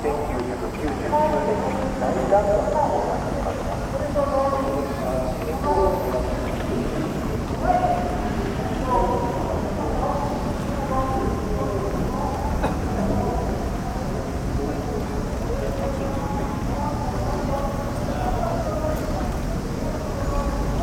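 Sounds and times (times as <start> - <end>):
footsteps: 0.0 - 7.6
crowd voices at Yasukuni Shrine, Tokyo: 0.0 - 20.8.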